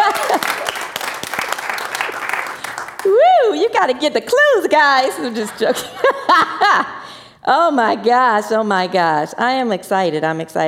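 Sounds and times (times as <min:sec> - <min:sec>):
laughter: 0:00.0 - 0:00.8, 0:05.0 - 0:07.0
audience applause: 0:00.0 - 0:03.2
speech: 0:03.8 - 0:10.6.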